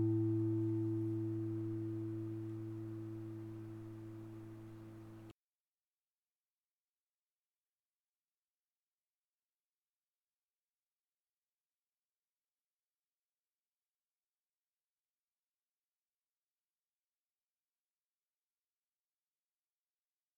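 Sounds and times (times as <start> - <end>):
acoustic guitar fifth string A: 0.0 - 4.7.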